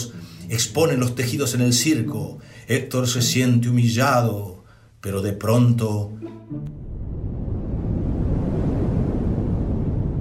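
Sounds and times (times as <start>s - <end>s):
speech: 0.5s - 6.9s
strong wind roaring: 6.7s - 10.1s.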